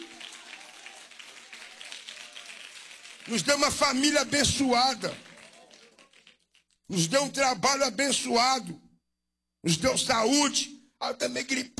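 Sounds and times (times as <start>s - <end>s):
audience clapping: 0.0s - 6.9s
speech: 3.3s - 5.3s, 6.9s - 8.8s, 9.6s - 11.7s.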